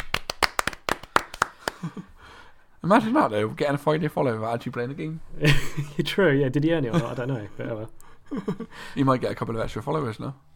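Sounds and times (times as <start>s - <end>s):
applause: 0.0s - 1.9s
speech: 2.8s - 10.5s.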